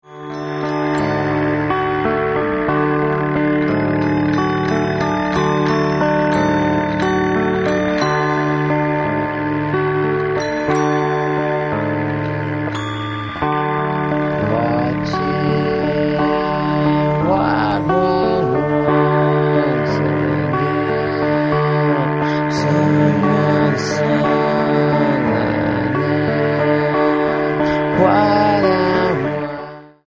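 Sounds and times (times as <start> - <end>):
lullaby music: 0.0 - 30.0.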